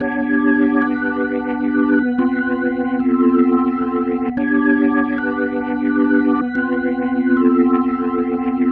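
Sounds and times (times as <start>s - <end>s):
psychedelic organ loop: 0.0s - 8.7s.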